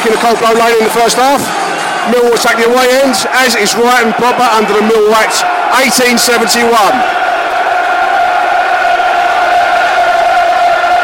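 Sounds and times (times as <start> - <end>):
football crowd cheering before kickoff: 0.0 - 11.0
speech: 0.1 - 7.4.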